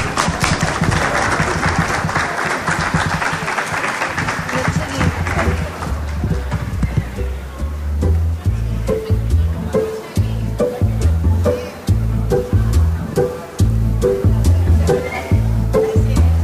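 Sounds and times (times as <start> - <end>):
sustained audience applause: 0.0 - 6.9
low murmur of voices: 0.0 - 16.4.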